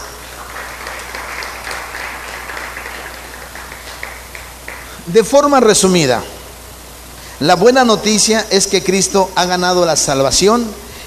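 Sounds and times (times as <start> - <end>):
audience applause: 0.0 - 5.0
speech: 5.1 - 6.4, 7.4 - 10.8.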